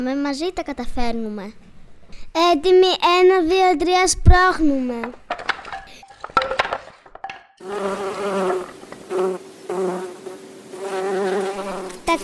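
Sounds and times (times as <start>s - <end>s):
speech: 0.0s - 5.3s
bees flying: 7.6s - 12.2s.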